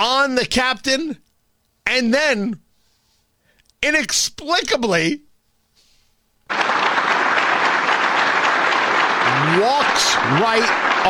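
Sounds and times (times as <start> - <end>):
speech: 0.2 - 1.2, 1.9 - 2.6, 3.8 - 5.2, 6.5 - 6.8, 9.4 - 11.0
crowd applause at a Medal of Honor ceremony: 6.5 - 11.0.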